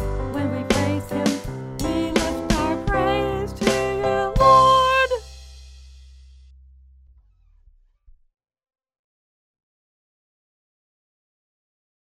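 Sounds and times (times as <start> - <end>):
uplifting psalm music: 0.0 - 5.4.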